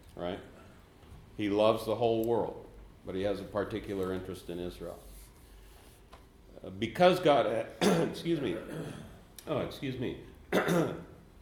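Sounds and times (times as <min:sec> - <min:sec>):
speech: 0:00.2 - 0:00.5, 0:01.4 - 0:05.1, 0:06.6 - 0:11.1
man clearing throat: 0:07.8 - 0:09.2, 0:10.5 - 0:11.2.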